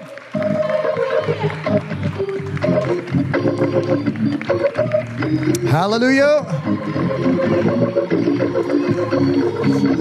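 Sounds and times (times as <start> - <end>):
audience clapping hands: 0.0 - 6.4
speech: 3.7 - 9.9.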